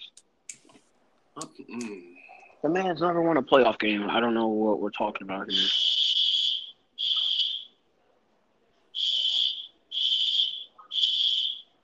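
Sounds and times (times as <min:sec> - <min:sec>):
speech: 0:01.4 - 0:05.8
alarm going off outside: 0:05.5 - 0:07.7, 0:09.0 - 0:11.7.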